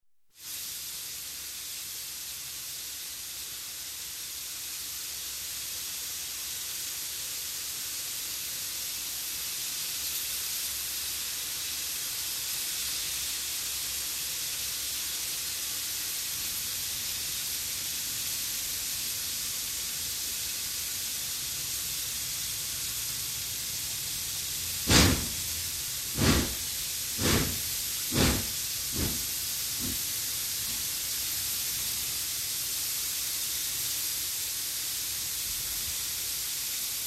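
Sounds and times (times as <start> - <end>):
stationary steam train: 0.4 - 37.0
steam train safety valve blowing: 24.4 - 30.9.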